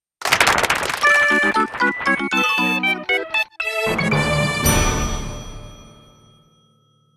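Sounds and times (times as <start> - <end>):
clear boss fanfare: 1.0 - 6.2.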